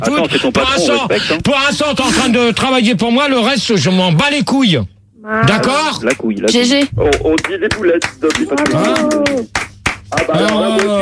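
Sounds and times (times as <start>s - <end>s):
speech: 0.0s - 10.9s
hand clapping: 6.1s - 10.9s.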